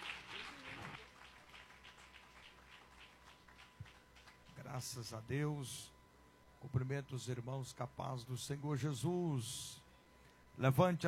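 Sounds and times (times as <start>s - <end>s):
audience applauding: 0.0s - 4.5s
speech: 4.7s - 6.0s, 6.6s - 9.8s, 10.6s - 11.0s.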